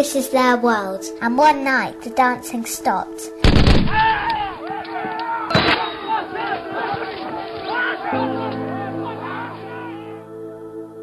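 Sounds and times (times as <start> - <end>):
speech: 0.0 - 5.2
gunfire: 3.4 - 4.3, 5.5 - 6.1
laughter: 4.4 - 10.2.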